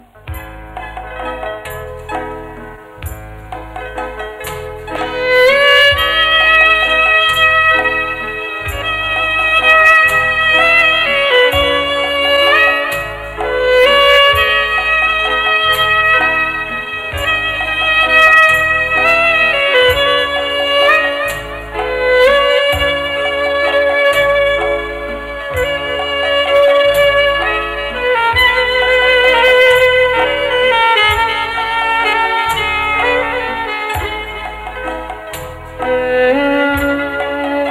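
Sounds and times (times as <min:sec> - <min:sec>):
violin: 0:00.0 - 0:37.6.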